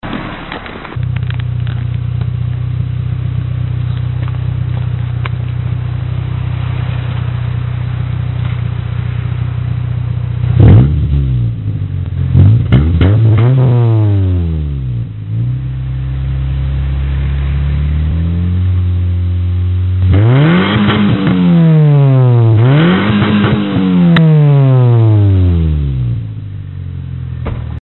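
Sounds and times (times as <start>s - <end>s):
stainless steel tuning silencer on a 1.6 engine idling: 0.0s - 27.7s.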